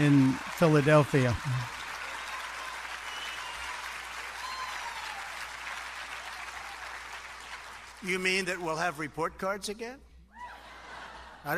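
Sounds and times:
speech: 0:00.0 - 0:01.8, 0:08.0 - 0:10.1
standing ovation applause from crowd of women in packed hall: 0:00.0 - 0:08.6.

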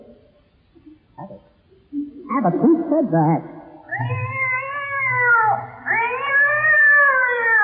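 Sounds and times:
speech: 0:02.4 - 0:04.1
cat yowling after its tail is stepped on: 0:03.9 - 0:07.6.

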